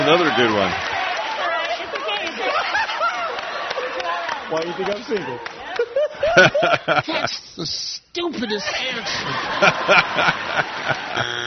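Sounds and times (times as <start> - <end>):
lively talk: 0.0 - 11.2
speech: 0.1 - 0.9, 4.5 - 5.6, 6.4 - 11.4
laughter: 2.0 - 4.2, 5.6 - 7.4, 8.5 - 11.4
game-show buzzer for a wrong answer: 10.9 - 11.4.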